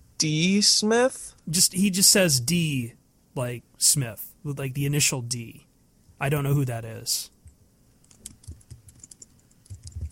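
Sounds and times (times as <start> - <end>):
speech: 0.2 - 7.4
frantic typing on computer keyboards: 8.0 - 10.1.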